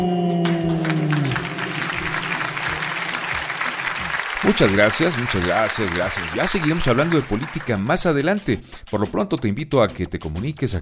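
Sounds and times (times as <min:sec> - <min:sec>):
applause: 0:00.4 - 0:08.5
speech: 0:04.5 - 0:10.8.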